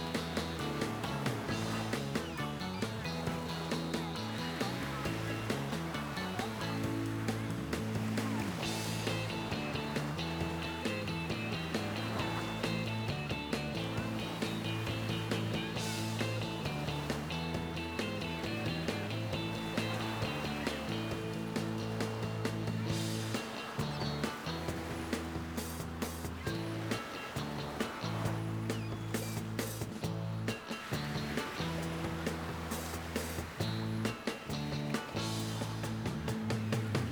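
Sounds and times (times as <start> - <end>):
wild water ambience: 0.0 - 37.0.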